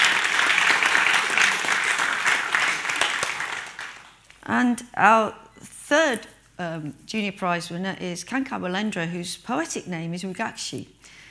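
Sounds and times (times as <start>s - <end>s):
audience clapping: 0.0s - 4.4s
speech: 4.5s - 11.2s.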